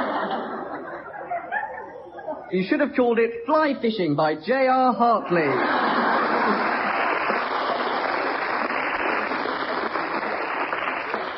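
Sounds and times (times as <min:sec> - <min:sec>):
laughter: 0:00.0 - 0:02.9, 0:05.1 - 0:10.4
speech: 0:02.5 - 0:05.8, 0:06.5 - 0:06.7
audience applause: 0:05.4 - 0:11.3.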